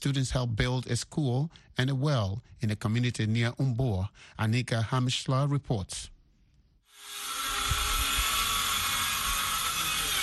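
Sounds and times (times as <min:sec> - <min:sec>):
speech: 0:00.0 - 0:06.2
power drill whining: 0:06.9 - 0:10.2.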